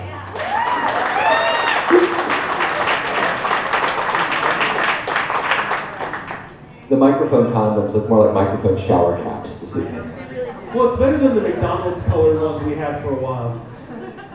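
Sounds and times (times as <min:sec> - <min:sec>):
audience applause: 0:00.0 - 0:06.6
speech: 0:06.9 - 0:13.8
laughter: 0:09.7 - 0:14.3.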